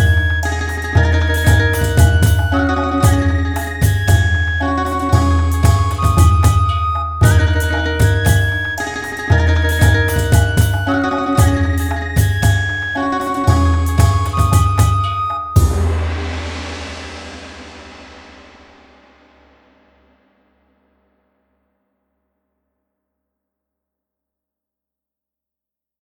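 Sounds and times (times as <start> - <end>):
Chinese ribbon dance instrumental: 0.0 - 17.0.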